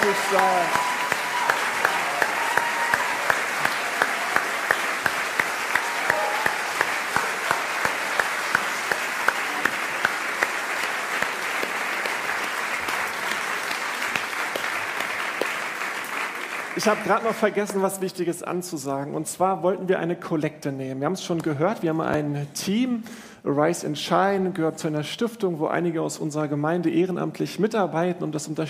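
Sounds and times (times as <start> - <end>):
big applause for singers at a church service: 0.0 - 17.8
speech: 0.3 - 0.9, 16.8 - 28.6.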